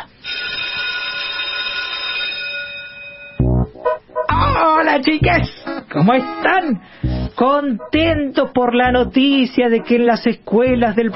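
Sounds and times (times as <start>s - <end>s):
school bell ringing: 0.2s - 3.5s
speech: 5.0s - 11.1s.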